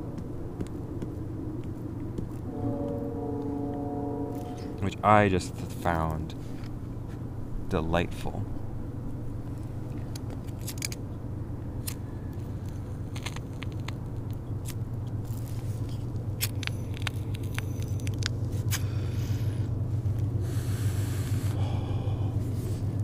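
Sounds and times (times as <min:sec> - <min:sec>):
distant highway traffic: 0:00.0 - 0:23.0
trains: 0:00.4 - 0:10.6, 0:15.6 - 0:23.0
speech: 0:04.8 - 0:06.4, 0:07.7 - 0:08.5.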